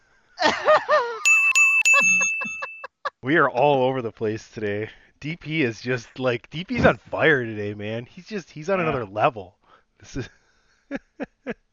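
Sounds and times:
speech: 0.4 - 0.8, 3.2 - 11.6
laughter: 0.4 - 3.2
bell ringing: 1.2 - 3.0.

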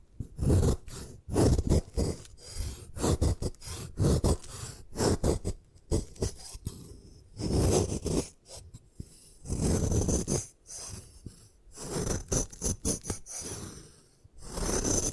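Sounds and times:
gym chalk being crushed, crunching and scraping: 0.3 - 13.8, 14.4 - 15.1.

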